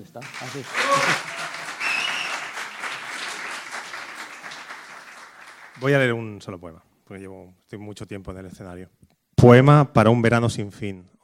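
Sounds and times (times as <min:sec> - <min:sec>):
speech: 0:00.0 - 0:01.4, 0:05.8 - 0:11.2
audience applause: 0:00.0 - 0:06.1.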